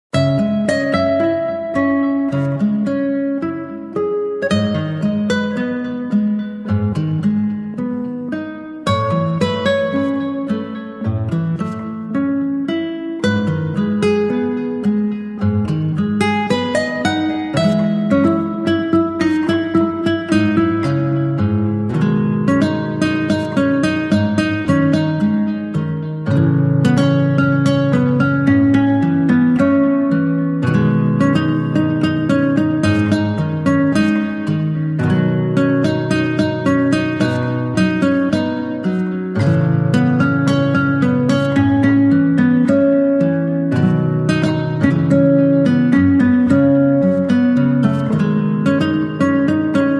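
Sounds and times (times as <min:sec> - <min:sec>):
guitar: 0:00.0 - 0:49.9.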